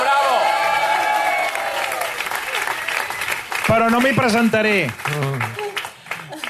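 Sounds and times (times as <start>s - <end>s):
audience applause: 0.0s - 6.4s
speech: 3.7s - 5.6s.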